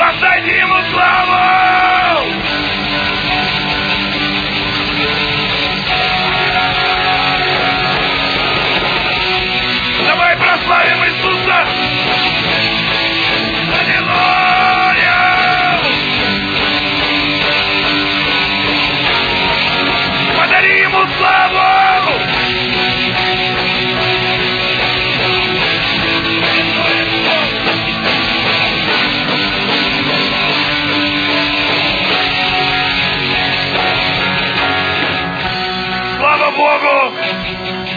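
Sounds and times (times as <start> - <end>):
audience cheering and applauding: 0.2 - 37.8.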